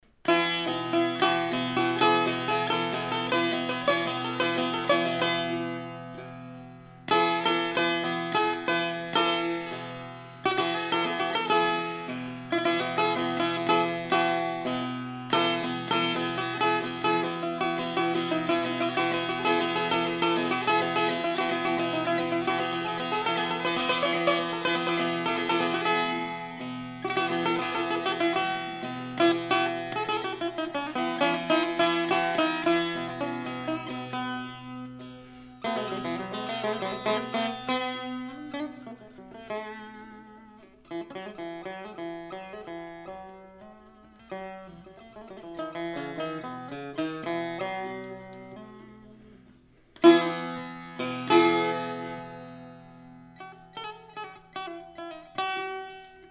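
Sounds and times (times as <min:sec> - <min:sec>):
Persian setar playing: 0:00.0 - 0:56.2.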